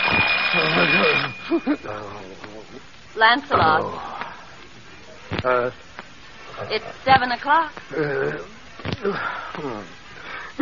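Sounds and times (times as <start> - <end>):
alarm clock ringing: 0.0 - 2.1
speech: 1.0 - 4.1, 5.4 - 5.8, 6.6 - 10.0.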